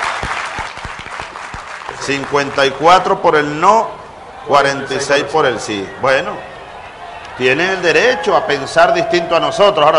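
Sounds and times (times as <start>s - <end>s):
audience applause at a Venezuelan presidential address: 0.0s - 2.8s
speech: 2.1s - 6.5s, 7.4s - 9.9s.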